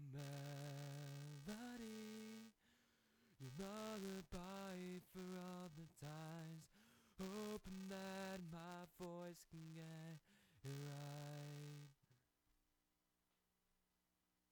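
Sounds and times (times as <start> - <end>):
vocal track static: 0.2 - 2.6, 3.4 - 12.0.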